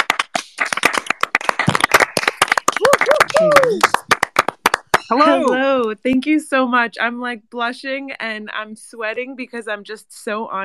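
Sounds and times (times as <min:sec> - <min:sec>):
applause from a small group: 0:00.0 - 0:05.6
voices calling out: 0:03.0 - 0:04.0
speech: 0:03.4 - 0:04.0, 0:05.1 - 0:10.6.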